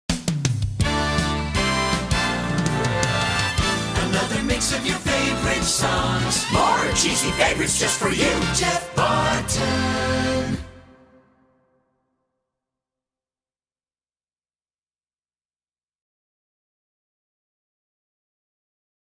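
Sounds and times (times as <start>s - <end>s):
song: 0.8s - 11.6s.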